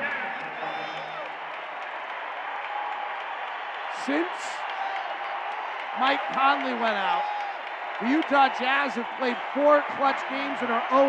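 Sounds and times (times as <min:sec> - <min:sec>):
basketball arena crowd cheering and clapping: 0:00.0 - 0:11.0
speech: 0:04.0 - 0:04.6, 0:06.0 - 0:07.4, 0:08.0 - 0:11.0.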